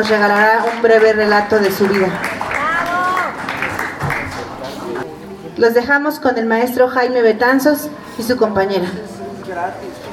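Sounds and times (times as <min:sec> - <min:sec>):
speech: 0:00.0 - 0:02.4, 0:05.6 - 0:10.0
audience applause: 0:00.0 - 0:05.0.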